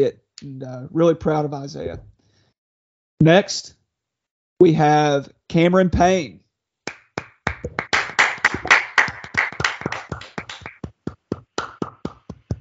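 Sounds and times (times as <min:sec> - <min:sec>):
speech: 0:00.0 - 0:02.1, 0:03.2 - 0:03.8, 0:04.6 - 0:06.4
hand clapping: 0:06.9 - 0:12.6.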